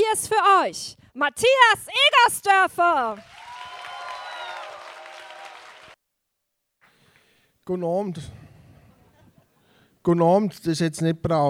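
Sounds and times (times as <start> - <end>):
speech: 0.1 - 3.4, 7.7 - 8.4, 10.0 - 11.4
audience applause: 3.2 - 6.0
cheering whistles: 3.3 - 6.0.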